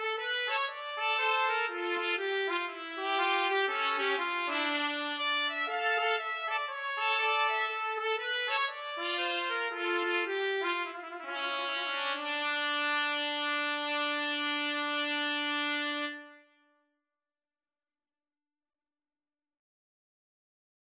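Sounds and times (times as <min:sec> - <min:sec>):
trumpets playing: 0:00.2 - 0:16.4
trombone playing: 0:03.0 - 0:16.3.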